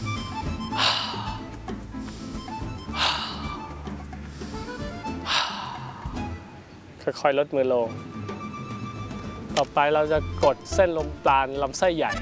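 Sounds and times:
inhaling through nose, exhaling through mouth: 0.2s - 6.4s
speech: 7.1s - 8.1s, 9.6s - 12.2s.

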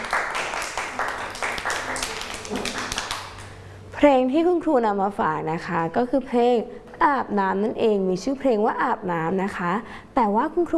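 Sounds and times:
children clapping hands: 0.0s - 3.6s
speech: 4.0s - 10.7s.

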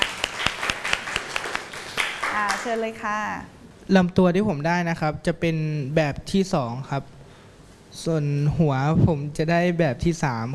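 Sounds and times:
classroom applause: 0.0s - 2.9s
speech: 2.6s - 7.2s, 7.9s - 10.5s.

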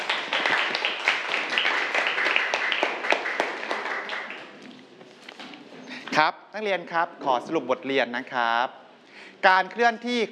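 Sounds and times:
students applauding a classmate: 0.0s - 4.8s
speech: 6.2s - 8.8s, 9.4s - 10.2s.

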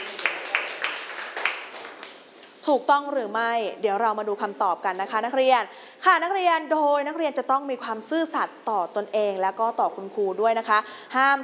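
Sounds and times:
students clapping for the winning group in class: 0.0s - 2.3s
speech: 2.6s - 11.4s.

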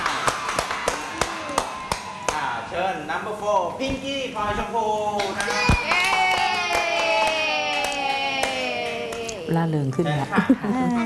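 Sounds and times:
hand clapping: 0.0s - 2.5s, 5.2s - 9.4s
speech: 2.8s - 6.0s, 9.5s - 11.0s.

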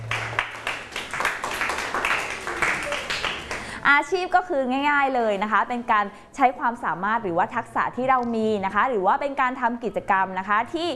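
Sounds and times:
students clapping: 0.0s - 3.8s
speech: 3.9s - 10.9s.

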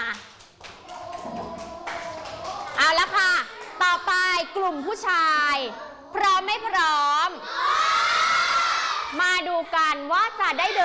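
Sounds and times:
classroom of children clapping for a group of girls: 0.0s - 4.4s
speech: 4.4s - 7.8s, 9.1s - 10.8s.

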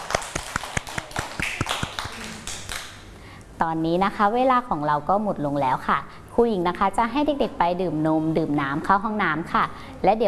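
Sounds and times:
children clapping for themselves: 0.0s - 3.0s
speech: 3.6s - 10.2s.

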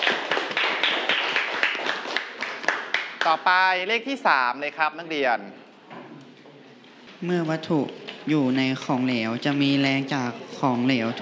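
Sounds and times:
classroom clapping for a student: 0.0s - 3.8s
speech: 3.3s - 5.6s, 7.2s - 11.2s.

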